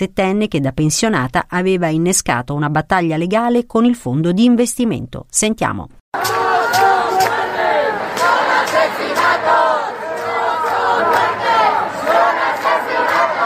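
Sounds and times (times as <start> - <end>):
speech: 0.0 - 6.4
protest crowd chanting in a city square: 6.2 - 13.4.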